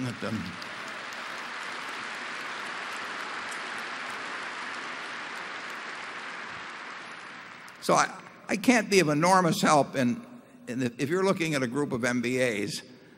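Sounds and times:
audience applause: 0.0 - 8.1
speech: 0.1 - 0.7, 7.8 - 12.9.

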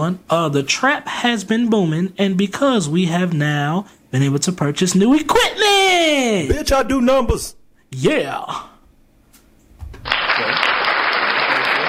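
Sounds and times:
speech: 0.0 - 8.7
applause: 10.0 - 11.8.

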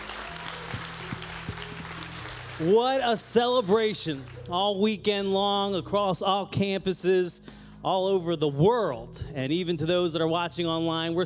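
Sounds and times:
audience clapping: 0.0 - 4.6
speech: 2.6 - 11.2.

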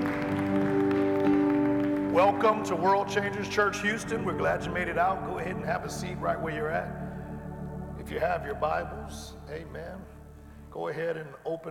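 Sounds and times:
audience hand clapping: 0.0 - 4.8
sustained organ or keyboard chord: 0.0 - 11.6
speech: 2.2 - 7.0, 8.1 - 10.2, 10.8 - 11.6.

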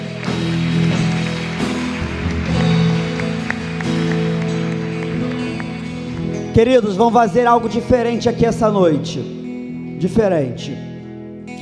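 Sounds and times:
audience applause: 0.0 - 6.9
speech: 6.6 - 9.4, 10.0 - 10.9.

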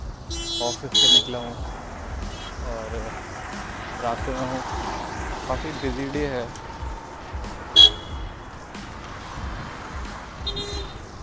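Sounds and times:
city road traffic in Gurgaon after heavy rain: 0.0 - 11.2
car horns honking in Gurgaon city traffic: 0.2 - 2.6, 7.6 - 8.6, 10.4 - 11.1
speech: 0.6 - 1.8, 2.6 - 6.6.

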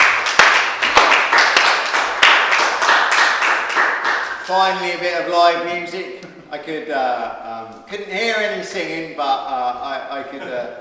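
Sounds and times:
audience clapping in appreciation: 0.0 - 4.7
speech: 4.5 - 10.8.

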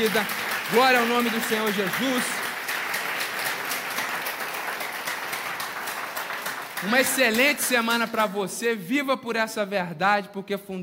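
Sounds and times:
speech: 0.0 - 2.4, 6.8 - 10.8
audience applause: 0.0 - 8.3.

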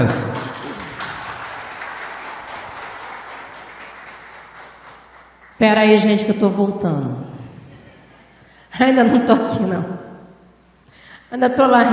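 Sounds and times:
speech: 0.0 - 0.4, 5.6 - 7.3, 8.8 - 10.1, 11.3 - 11.9
audience applause: 0.0 - 5.8.

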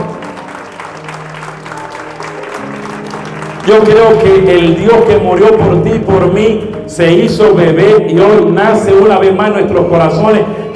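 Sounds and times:
audience applause: 0.0 - 4.8
speech: 3.7 - 10.7.

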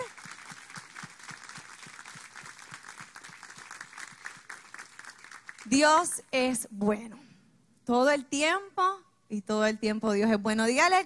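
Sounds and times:
audience applause for the pastor: 0.0 - 5.7
speech: 5.7 - 7.2, 7.9 - 11.0.

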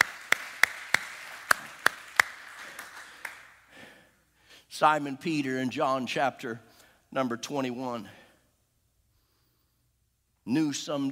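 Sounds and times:
audience clapping hands: 0.0 - 3.7
speech: 4.8 - 8.2, 10.4 - 11.0.

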